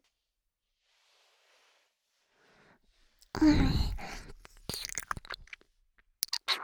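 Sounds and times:
gentle ear licking: 3.2 - 5.7, 6.2 - 6.6.

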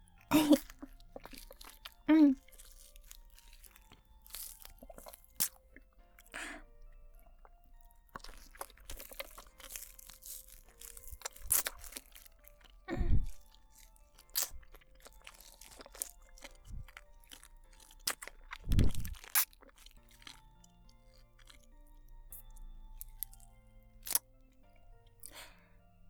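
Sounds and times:
person crunching and chewing food while eating: 0.0 - 26.0.

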